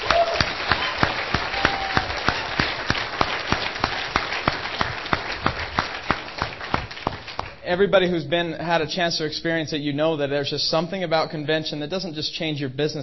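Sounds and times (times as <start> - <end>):
audience applause: 0.0 - 7.6
speech: 7.7 - 13.0.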